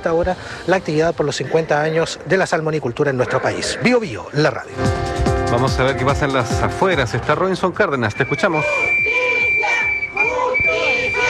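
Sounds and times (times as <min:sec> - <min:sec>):
speech: 0:00.0 - 0:09.2
protesters shouting demands for justice outside: 0:08.2 - 0:11.2.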